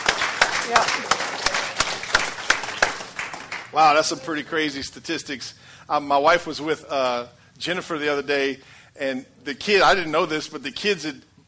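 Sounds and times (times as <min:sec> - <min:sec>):
audience round of applause: 0:00.0 - 0:04.1
speech: 0:00.7 - 0:01.2, 0:03.7 - 0:11.3.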